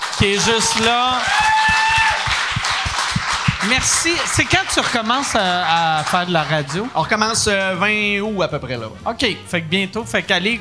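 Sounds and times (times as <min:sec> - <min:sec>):
audience applause: 0:00.0 - 0:07.2
speech: 0:00.2 - 0:01.8, 0:03.6 - 0:10.5.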